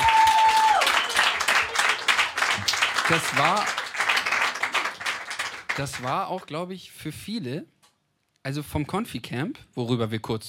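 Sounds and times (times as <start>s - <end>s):
audience applause: 0.0s - 6.4s
speech: 3.1s - 3.8s, 5.8s - 7.8s, 8.4s - 10.4s.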